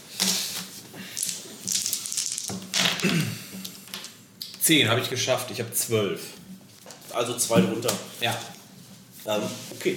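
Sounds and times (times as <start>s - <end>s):
dice being rolled: 1.2s - 3.0s
speech: 3.0s - 3.4s, 4.7s - 6.5s, 7.2s - 8.6s, 9.2s - 9.9s.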